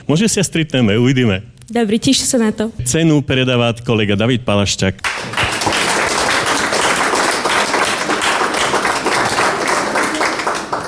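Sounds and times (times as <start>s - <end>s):
speech: 0.1s - 5.4s
audience applause: 5.0s - 10.8s.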